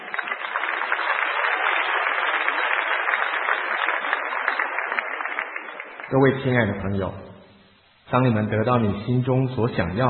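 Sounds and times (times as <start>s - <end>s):
audience applause: 0.0s - 6.3s
speech: 6.1s - 7.3s, 8.1s - 10.0s.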